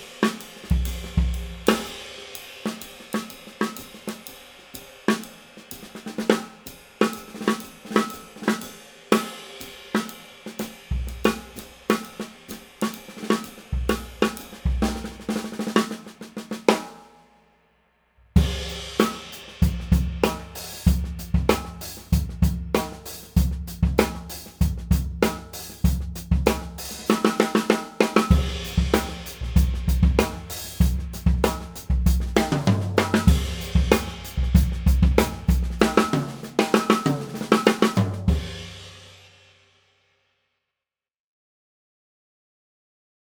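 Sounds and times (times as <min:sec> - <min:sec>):
drums: 0:00.0 - 0:17.5, 0:18.2 - 0:39.9.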